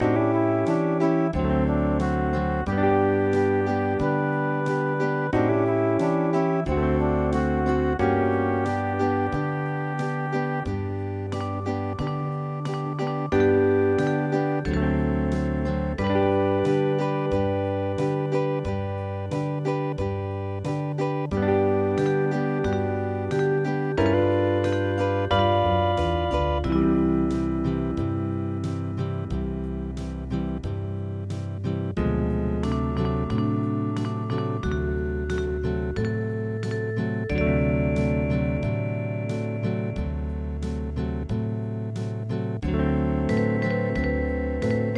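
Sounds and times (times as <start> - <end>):
Hawaiian music: 0.0 - 44.9.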